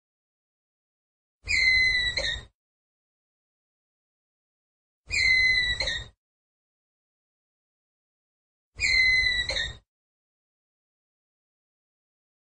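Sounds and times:
ground squirrel whistled call: 1.5 - 2.5, 5.1 - 6.1, 8.8 - 9.8.

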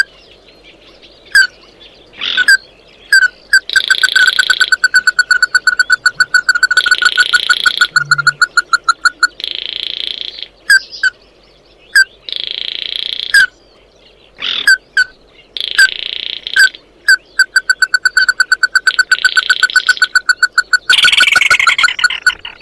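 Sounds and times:
bird calls: 0.0 - 22.6
harsh rasping buzzy noise: 6.0 - 9.0.

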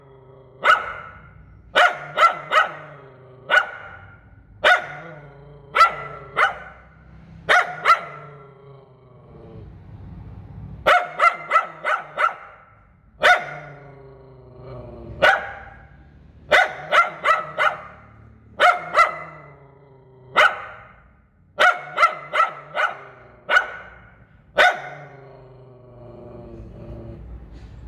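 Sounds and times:
poodle barking: 0.6 - 8.5, 10.8 - 14.0, 15.1 - 25.2.

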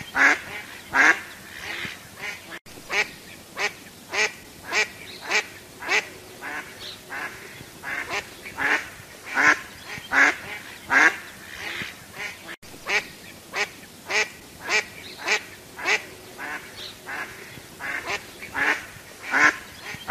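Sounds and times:
duck quacking: 0.0 - 20.0.

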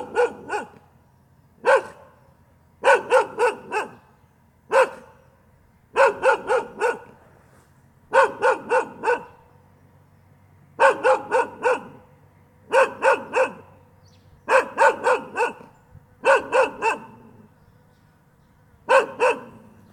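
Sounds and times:
dog barking: 0.0 - 0.8, 1.6 - 2.2, 2.8 - 4.1, 4.7 - 5.2, 5.9 - 7.2, 8.1 - 9.4, 10.8 - 12.0, 12.7 - 13.8, 14.5 - 17.5, 18.8 - 19.8.

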